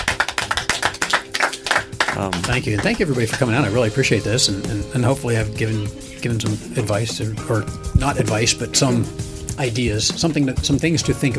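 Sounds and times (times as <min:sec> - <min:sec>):
audience applause: 0:00.0 - 0:03.6
speech: 0:02.2 - 0:11.3.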